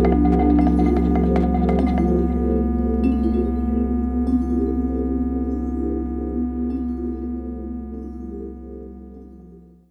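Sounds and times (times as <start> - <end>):
vibraphone: 0.0 - 7.3
marimbaphone: 0.0 - 9.6
two synthesizers: 0.0 - 9.8.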